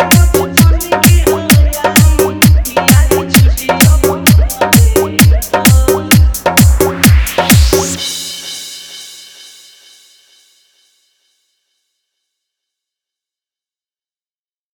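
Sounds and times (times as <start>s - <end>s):
Bhojpuri DJ mix: 0.0s - 9.8s.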